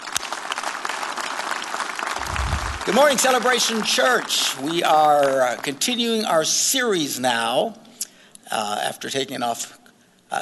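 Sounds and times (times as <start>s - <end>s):
church congregation applauding to welcome a pastor at a Sunday service: 0.0s - 6.0s
speech: 2.9s - 7.8s, 8.5s - 10.4s.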